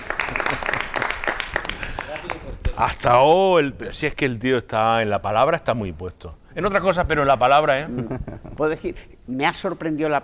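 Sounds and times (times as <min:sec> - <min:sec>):
scattered clapping at a town fair in Peal de Becerro: 0:00.0 - 0:02.8
speech: 0:02.8 - 0:10.2.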